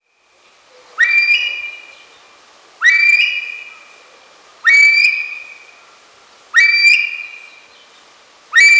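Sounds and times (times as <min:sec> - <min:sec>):
female Himalayan monal whistled calls: 0:01.0 - 0:01.9, 0:02.8 - 0:03.8, 0:04.7 - 0:05.7, 0:06.6 - 0:07.6, 0:08.6 - 0:08.7.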